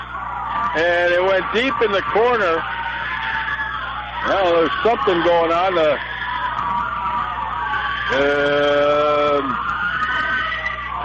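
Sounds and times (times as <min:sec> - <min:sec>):
crowd noise: 0:00.0 - 0:11.0
faint shouting and chatter: 0:00.0 - 0:11.0
girls screaming and hollering: 0:00.0 - 0:11.0
speech: 0:00.7 - 0:02.8, 0:04.2 - 0:06.1, 0:08.1 - 0:09.6.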